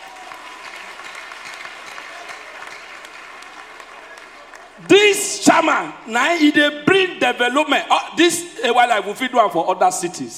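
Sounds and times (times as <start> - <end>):
audience applause: 0.0 - 4.9
speech: 4.8 - 10.3.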